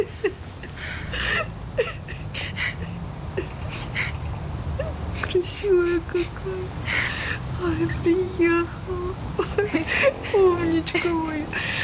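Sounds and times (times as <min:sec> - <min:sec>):
woman crying: 0:00.0 - 0:11.8
speech: 0:05.6 - 0:07.0, 0:07.6 - 0:11.8.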